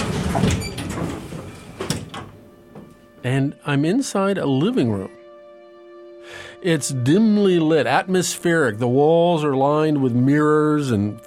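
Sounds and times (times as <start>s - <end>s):
elevator doors opening: 0.0s - 3.0s
speech: 0.4s - 0.7s, 3.2s - 5.2s, 6.6s - 11.2s.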